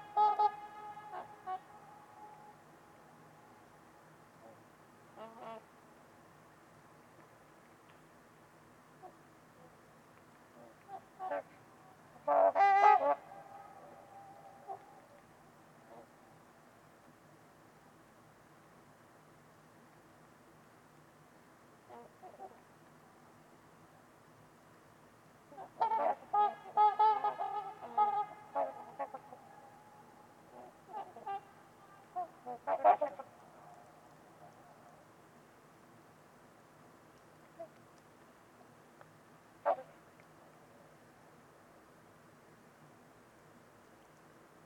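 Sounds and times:
trumpeter swans honking: 0:00.0 - 0:02.7, 0:10.6 - 0:11.6, 0:12.2 - 0:15.2, 0:25.5 - 0:33.8.

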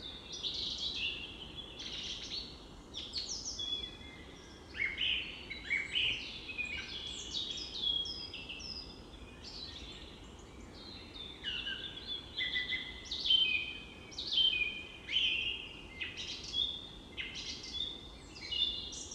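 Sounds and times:
spring dawn chorus of birds in a forest meadow: 0:00.0 - 0:19.1.

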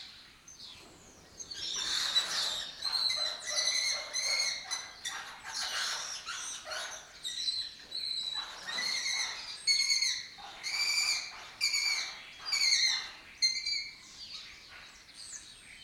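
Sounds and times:
lesser kestrels giving harsh chattering calls: 0:01.5 - 0:13.8.

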